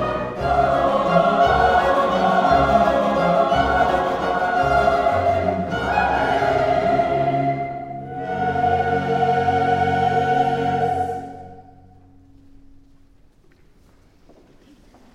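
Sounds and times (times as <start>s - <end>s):
choir singing: 0.0s - 11.9s.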